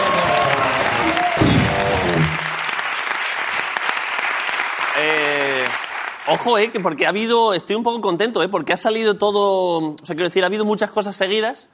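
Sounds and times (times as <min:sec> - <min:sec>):
audience applause at a live show: 0:00.0 - 0:07.0
speech: 0:06.3 - 0:11.7.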